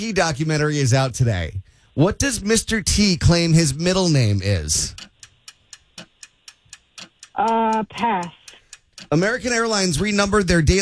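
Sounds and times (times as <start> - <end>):
speech: 0.0 - 5.1, 7.4 - 8.4, 9.0 - 10.7
quiz game 60-second countdown clock ticking: 2.9 - 10.7.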